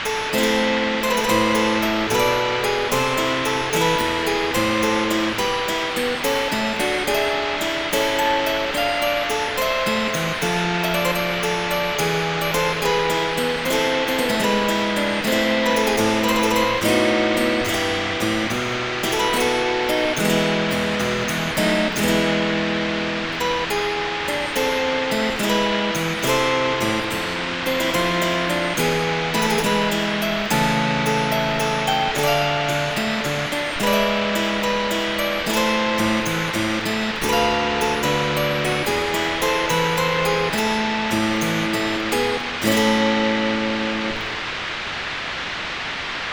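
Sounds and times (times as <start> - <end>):
harp hiss: 0.0 - 46.3.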